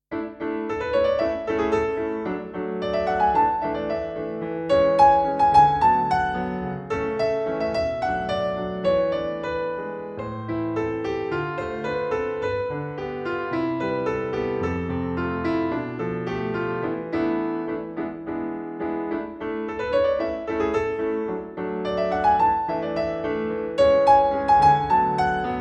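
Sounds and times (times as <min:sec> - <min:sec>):
solo piano: 0:00.0 - 0:25.5.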